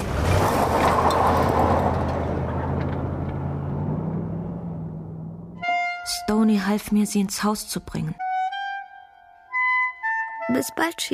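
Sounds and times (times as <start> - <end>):
heavy truck engine rumbling while driving: 0.0 - 8.6
speech: 6.3 - 8.2, 10.6 - 11.1.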